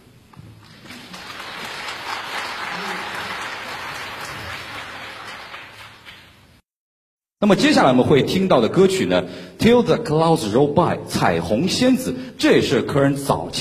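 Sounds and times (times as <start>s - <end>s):
concert audience applause welcoming performers on stage: 0.6s - 6.4s
speech: 7.4s - 13.5s.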